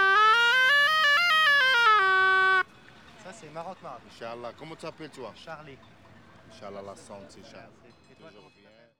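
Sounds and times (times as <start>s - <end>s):
traditional rita flute in Morocco: 0.0s - 2.7s.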